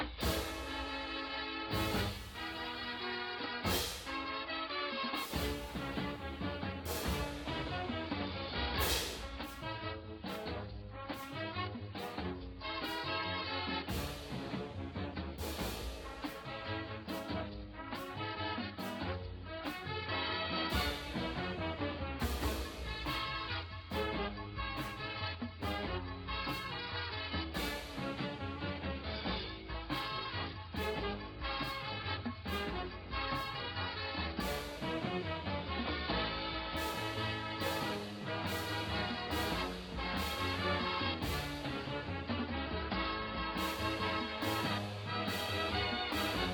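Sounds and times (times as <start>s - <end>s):
cymbals: 0.1s - 4.5s, 5.1s - 10.5s, 13.9s - 14.8s, 15.4s - 19.1s, 20.7s - 26.8s, 34.4s - 35.5s, 36.7s - 42.4s, 43.6s - 46.5s
drumline playing: 0.1s - 4.5s, 5.1s - 13.1s, 13.8s - 18.2s, 18.8s - 46.5s.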